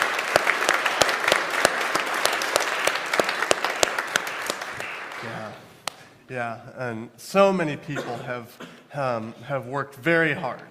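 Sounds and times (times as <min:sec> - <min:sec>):
round of applause: 0:00.0 - 0:06.0
speech: 0:06.3 - 0:10.6.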